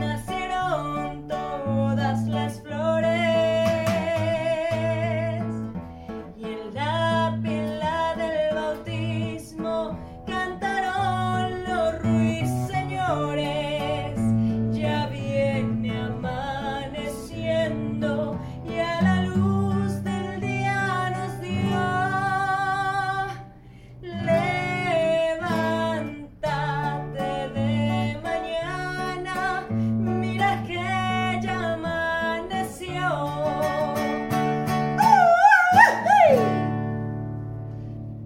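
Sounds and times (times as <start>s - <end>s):
Mexican birthday song: 0.0s - 5.6s, 6.3s - 37.1s.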